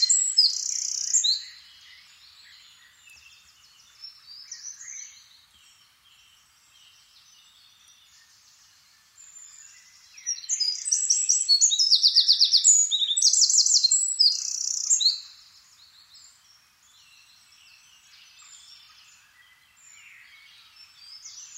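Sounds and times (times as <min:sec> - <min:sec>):
Eurasian wren trilling: 0:00.0 - 0:01.6, 0:10.2 - 0:15.4.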